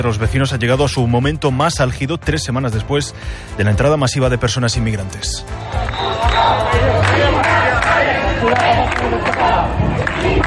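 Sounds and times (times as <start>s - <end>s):
speech: 0.0s - 10.4s
crowd shouting protest chants: 5.6s - 10.4s.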